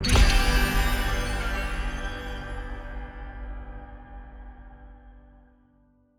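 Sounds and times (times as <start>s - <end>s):
small win sound: 0.0s - 2.9s.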